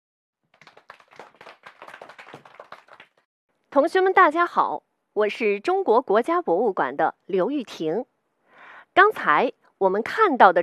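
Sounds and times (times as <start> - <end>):
audience applause: 0.5 - 3.2
speech: 3.7 - 8.1, 9.0 - 10.6.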